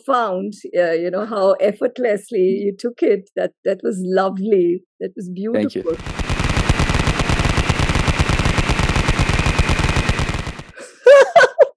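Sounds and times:
speech: 0:00.0 - 0:06.2
rapid machine-gun fire sound effect: 0:05.9 - 0:10.7.

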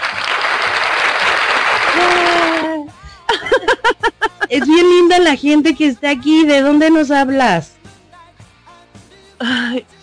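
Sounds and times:
studio audience clapping: 0:00.0 - 0:03.0
laughter: 0:01.9 - 0:05.0
speech: 0:03.9 - 0:07.8.

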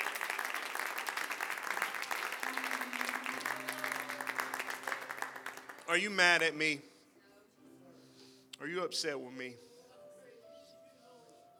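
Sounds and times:
audience clapping hands: 0:00.0 - 0:06.6
speech: 0:05.9 - 0:06.9, 0:08.6 - 0:09.7.

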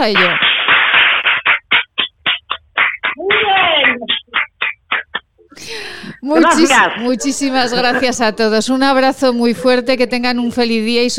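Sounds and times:
speech: 0:00.0 - 0:00.4, 0:06.2 - 0:11.1
elderly people applauding: 0:00.0 - 0:05.2
laughter: 0:03.2 - 0:04.4, 0:05.5 - 0:08.6.

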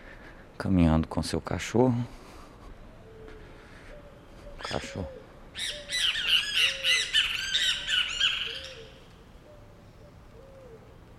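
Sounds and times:
speech: 0:00.6 - 0:02.2, 0:04.7 - 0:05.8
great kiskadees squawking calls: 0:03.0 - 0:10.9.

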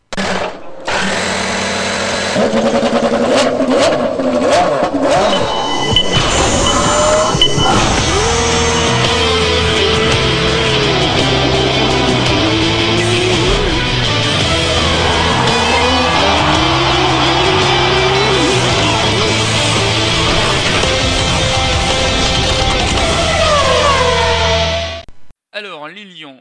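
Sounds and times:
IndyCar race cars on the Indianapolis road course: 0:00.8 - 0:25.0
speech: 0:02.5 - 0:02.9.

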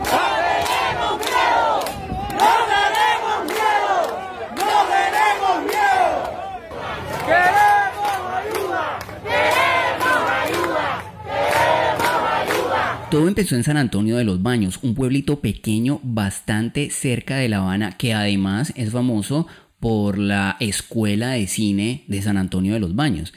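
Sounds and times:
protest crowd shouting: 0:00.0 - 0:13.1
speech: 0:13.2 - 0:23.3.

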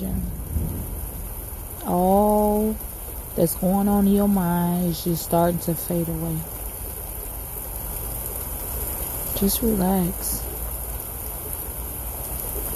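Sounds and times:
rain falling: 0:00.0 - 0:12.7
speech: 0:01.8 - 0:06.6, 0:09.4 - 0:10.5.

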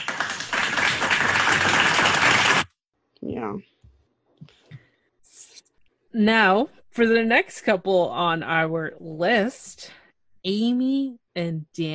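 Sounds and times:
hand clapping: 0:00.0 - 0:02.7
speech: 0:03.4 - 0:03.8, 0:06.1 - 0:11.9.

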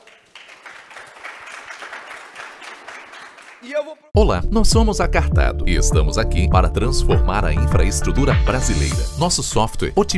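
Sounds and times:
audience applause: 0:00.0 - 0:03.9
speech: 0:03.6 - 0:10.1.

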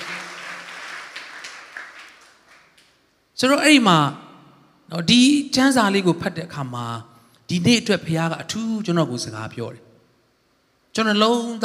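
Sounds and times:
church congregation clapping in praise of Jesus: 0:00.0 - 0:03.1
speech: 0:03.4 - 0:04.2, 0:04.9 - 0:09.9, 0:11.0 - 0:11.6.

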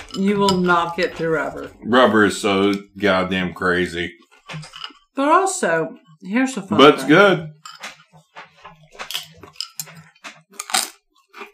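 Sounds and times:
speech: 0:00.1 - 0:07.6
person crunching nachos: 0:08.6 - 0:11.5.

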